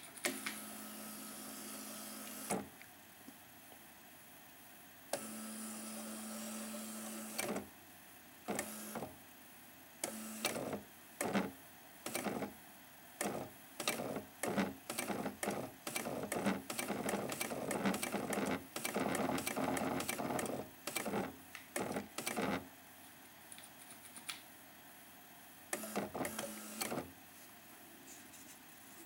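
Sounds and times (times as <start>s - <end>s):
Apple Silentype printer for Apple II printing: 0.2s - 2.7s, 5.1s - 7.7s, 8.5s - 9.2s, 10.0s - 12.6s, 13.2s - 22.7s, 25.7s - 27.1s.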